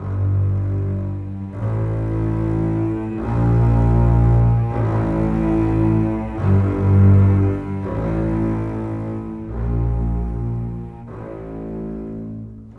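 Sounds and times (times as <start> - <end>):
cinematic bass cello: 0.0 - 12.7.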